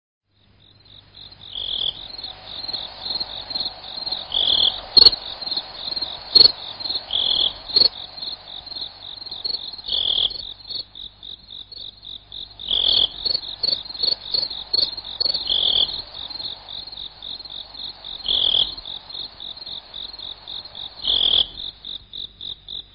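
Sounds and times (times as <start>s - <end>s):
slowed cricket chirps: 0.3s - 22.9s.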